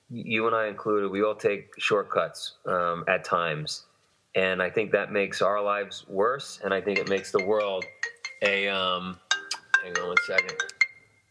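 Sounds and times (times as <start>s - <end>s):
speech: 0.1s - 9.2s, 9.8s - 10.8s
phone ringtone playing a bright electronic melody: 6.9s - 11.2s.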